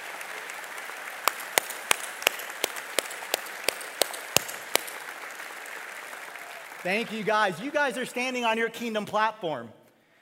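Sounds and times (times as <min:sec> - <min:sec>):
audience applause: 0:00.0 - 0:08.1
speech: 0:06.8 - 0:09.8.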